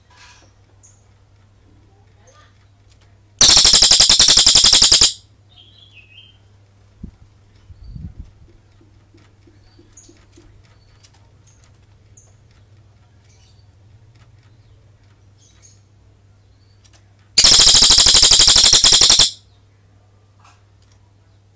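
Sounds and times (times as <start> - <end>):
cililin bird long rolling trill: 3.4 - 5.2, 17.4 - 19.4.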